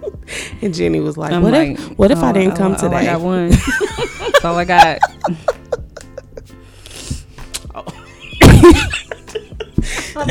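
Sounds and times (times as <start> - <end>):
speech: 0.6 - 5.5
laughter: 2.2 - 6.5, 7.8 - 10.2
person sniffing: 6.6 - 7.5.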